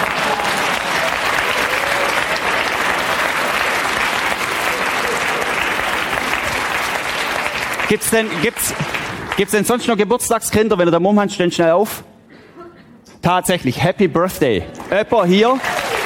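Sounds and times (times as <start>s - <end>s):
audience applause: 0.0s - 9.9s, 14.7s - 16.0s
speech: 7.9s - 12.1s, 13.2s - 15.7s.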